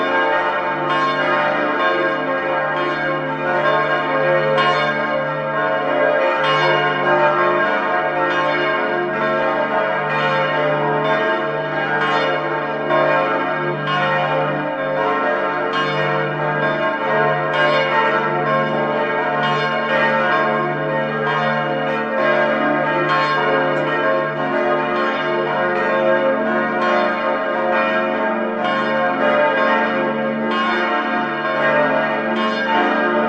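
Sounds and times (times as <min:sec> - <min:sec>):
bells ringing together: 0:00.0 - 0:33.2.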